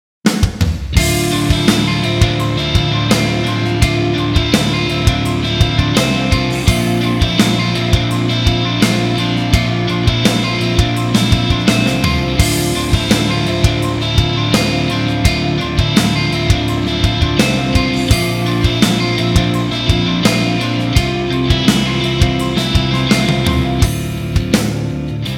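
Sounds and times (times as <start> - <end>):
instrumental music: 1.0 - 25.3.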